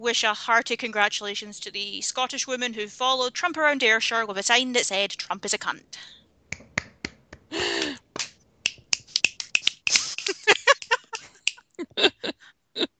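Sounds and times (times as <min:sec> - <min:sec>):
speech: 0:00.0 - 0:06.2
slow clapping: 0:06.5 - 0:11.6
laughter: 0:09.8 - 0:12.9.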